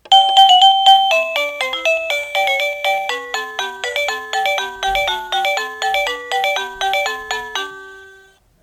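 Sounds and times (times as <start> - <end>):
melody: 0.0 - 8.4.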